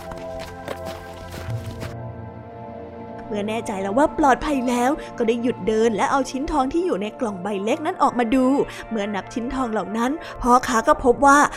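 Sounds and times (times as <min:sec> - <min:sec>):
hurried footsteps walking away: 0:00.0 - 0:02.2
sustained tonal musical background: 0:00.0 - 0:11.5
speech: 0:03.3 - 0:11.5.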